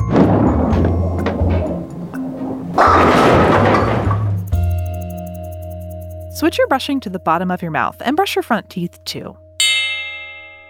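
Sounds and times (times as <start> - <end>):
bowling ball knocking over pins: 0.0 - 4.7
speech: 6.4 - 9.4.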